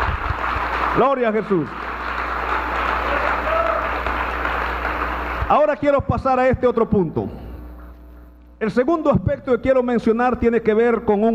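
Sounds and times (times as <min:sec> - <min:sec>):
audience applauding loudly: 0:00.0 - 0:05.6
speech: 0:01.0 - 0:01.8, 0:05.5 - 0:07.4, 0:08.6 - 0:11.3.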